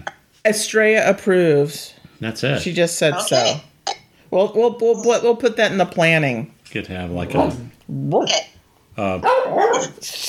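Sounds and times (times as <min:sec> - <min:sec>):
speech: 0:00.4 - 0:03.7, 0:04.3 - 0:10.2
dog yapping: 0:09.2 - 0:10.0.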